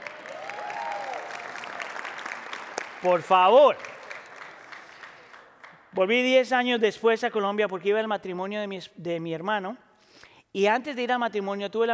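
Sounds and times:
audience applause: 0:00.0 - 0:05.8
speech: 0:03.0 - 0:04.0, 0:06.0 - 0:09.8, 0:10.5 - 0:11.9.

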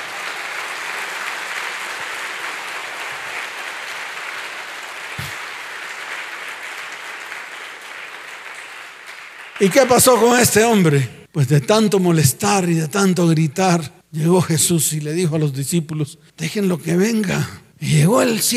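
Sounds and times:
audience applauding: 0:00.0 - 0:11.1
speech: 0:09.6 - 0:18.5.

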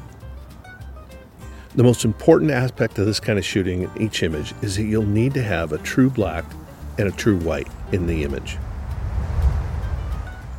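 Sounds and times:
speech: 0:01.7 - 0:08.7
wind blowing outdoors: 0:06.2 - 0:10.5.

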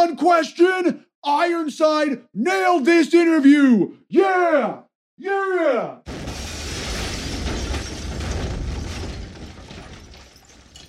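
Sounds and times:
speech: 0:00.0 - 0:06.2
someone crashing through a wall: 0:06.1 - 0:10.8.

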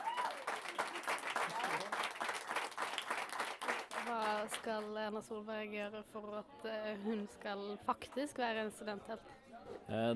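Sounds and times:
applause: 0:00.0 - 0:05.0
speech: 0:04.4 - 0:10.1.

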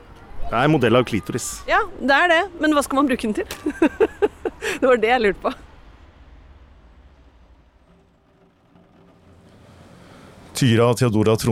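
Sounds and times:
speech: 0:00.5 - 0:05.7, 0:10.6 - 0:11.5
rain drumming on the roof: 0:03.3 - 0:10.7
laughter: 0:03.5 - 0:05.6.

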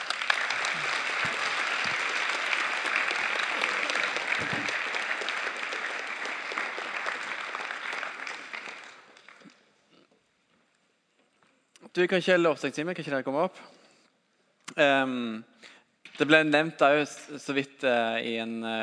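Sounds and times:
audience applause: 0:00.0 - 0:09.6
speech: 0:04.4 - 0:04.8, 0:12.0 - 0:13.8, 0:14.8 - 0:18.8.

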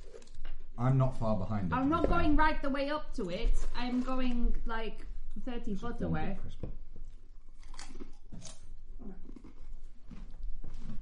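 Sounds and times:
loud crunching while eating: 0:00.0 - 0:00.4, 0:07.4 - 0:11.0
speech: 0:00.8 - 0:06.8.

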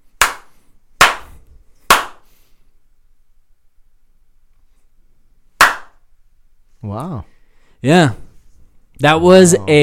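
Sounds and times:
sharp loud hand slaps: 0:00.2 - 0:02.4, 0:05.6 - 0:06.1
speech: 0:06.8 - 0:08.2, 0:09.0 - 0:09.8.

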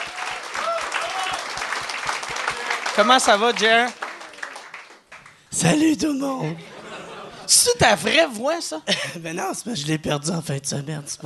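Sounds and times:
audience applause: 0:00.0 - 0:05.4
speech: 0:03.0 - 0:04.0, 0:05.5 - 0:06.7, 0:07.5 - 0:11.2
laughter: 0:06.3 - 0:08.1.

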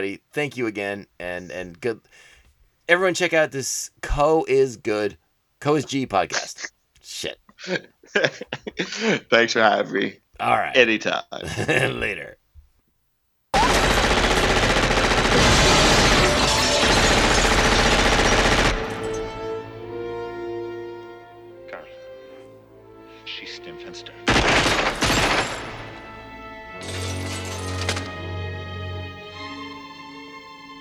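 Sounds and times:
speech: 0:00.0 - 0:02.3, 0:02.9 - 0:12.4
laughter: 0:06.1 - 0:06.7, 0:07.5 - 0:10.1, 0:11.4 - 0:12.2
gunfire shooting out glass: 0:13.6 - 0:19.6, 0:24.3 - 0:26.2, 0:26.8 - 0:28.1.

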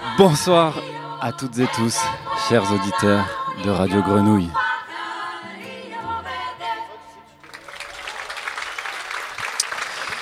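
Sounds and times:
speech: 0:00.2 - 0:04.6
theatre audience applauding: 0:07.4 - 0:10.2.

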